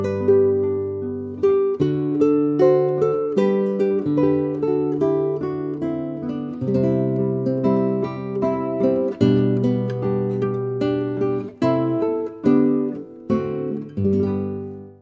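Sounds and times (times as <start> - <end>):
guitar music minuet: 0.0 - 15.0.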